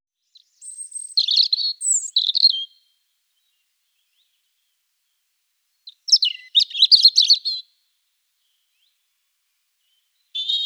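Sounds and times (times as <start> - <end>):
European robin song: 0.2 - 4.4, 5.8 - 7.7, 9.8 - 10.6.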